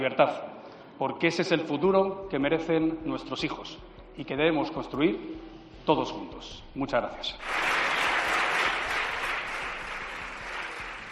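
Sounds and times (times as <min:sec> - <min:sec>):
speech: 0:00.0 - 0:07.7
parliamentary applause: 0:07.4 - 0:11.1.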